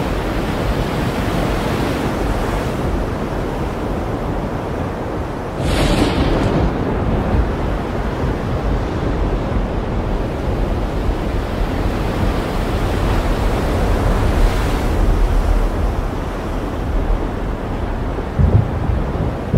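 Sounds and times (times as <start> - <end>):
stormy ocean: 0.0 - 19.5.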